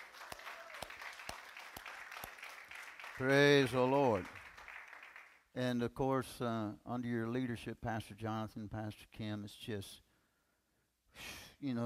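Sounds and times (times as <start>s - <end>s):
church congregation applauding a visiting church: 0.0s - 5.5s
speech: 3.2s - 4.4s, 5.6s - 10.0s, 11.2s - 11.8s.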